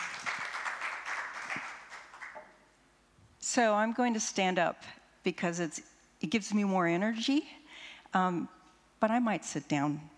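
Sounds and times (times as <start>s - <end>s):
audience applause welcoming a speaker: 0.0s - 2.4s
speech: 3.6s - 10.1s.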